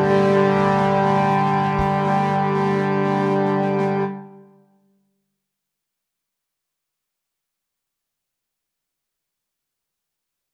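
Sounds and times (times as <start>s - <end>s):
B-flat trumpet: 0.0s - 4.8s.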